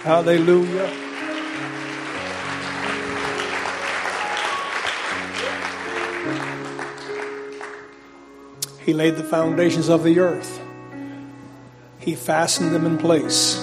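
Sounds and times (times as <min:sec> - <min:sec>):
speech: 0:00.0 - 0:01.8, 0:08.8 - 0:10.6, 0:12.0 - 0:13.6
audience applauding: 0:00.0 - 0:08.4
organ chords: 0:00.0 - 0:13.6.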